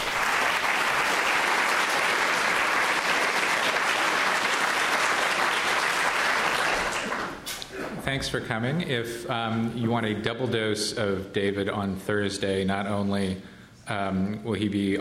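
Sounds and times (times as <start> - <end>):
audience applause welcoming the speakers at a museum talk: 0.0 - 7.5
speech: 8.1 - 15.0.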